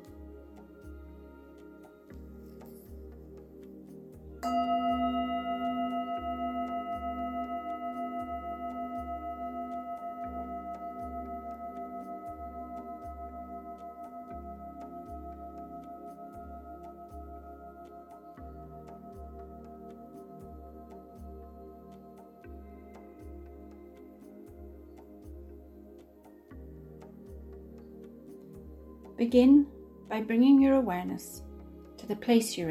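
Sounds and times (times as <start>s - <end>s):
speech: 4.4s - 4.7s, 29.2s - 31.4s, 32.1s - 32.7s
meditation bell ringing: 4.4s - 22.4s.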